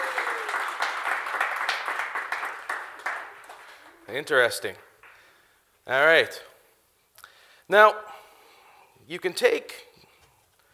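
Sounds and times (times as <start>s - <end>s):
audience applause: 0.0s - 5.3s
speech: 4.1s - 4.9s, 5.9s - 6.5s, 7.7s - 8.1s, 9.1s - 9.9s.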